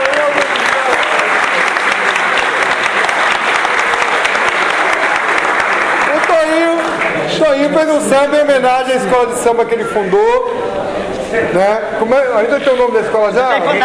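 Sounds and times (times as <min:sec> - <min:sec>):
audience applauding: 0:00.0 - 0:08.0
crowd cheering: 0:00.0 - 0:08.0
speech: 0:07.6 - 0:10.6, 0:11.3 - 0:13.8.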